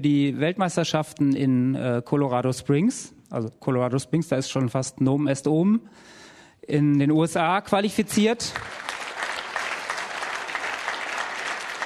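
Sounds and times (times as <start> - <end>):
speech: 0.0 - 8.9
audience applause: 8.5 - 11.8.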